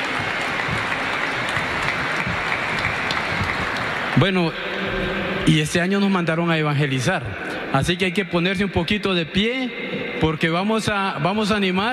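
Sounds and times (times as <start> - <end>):
audience applauding: 0.0 - 5.2
speech: 4.2 - 11.9.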